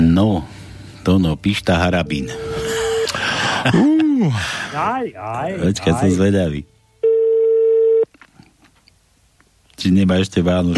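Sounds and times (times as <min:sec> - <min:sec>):
speech: 0:00.2 - 0:02.6, 0:03.6 - 0:06.7, 0:09.8 - 0:10.7
telephone ringback tone: 0:07.0 - 0:08.1.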